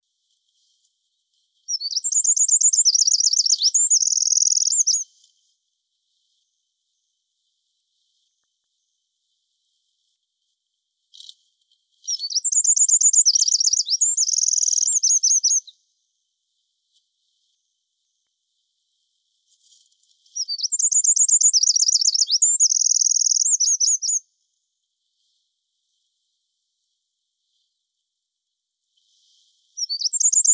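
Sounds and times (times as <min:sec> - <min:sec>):
Eurasian wren singing trills: 0:01.7 - 0:05.0, 0:12.1 - 0:15.7, 0:20.4 - 0:24.2, 0:29.8 - 0:30.5.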